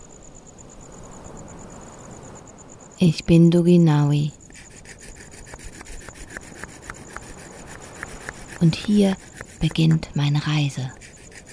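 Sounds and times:
speech: 0:03.0 - 0:04.4, 0:08.6 - 0:11.0
carving a wooden mask: 0:04.5 - 0:11.5.

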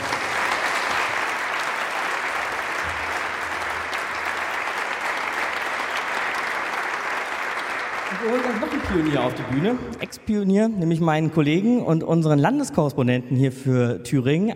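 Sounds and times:
audience applause: 0:00.0 - 0:10.3
speech: 0:08.2 - 0:14.5.

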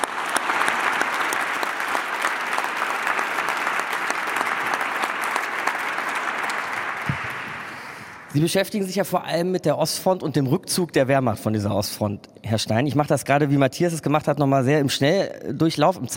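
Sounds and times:
audience applause: 0:00.0 - 0:08.4
speech: 0:08.4 - 0:16.1.

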